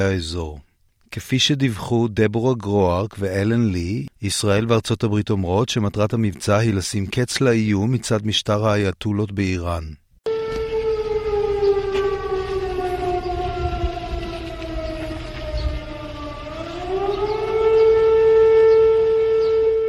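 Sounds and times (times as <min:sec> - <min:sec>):
speech: 0:00.0 - 0:10.0
air raid sirens across Israel: 0:10.3 - 0:19.8
low rumble: 0:10.7 - 0:17.5.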